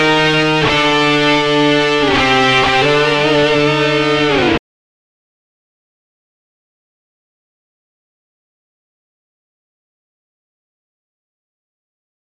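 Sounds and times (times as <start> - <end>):
guitar: 0.0 - 4.6.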